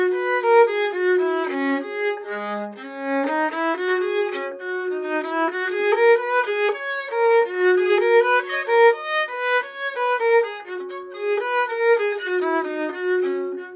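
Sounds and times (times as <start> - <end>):
baroque bowed string: 0.0 - 13.7.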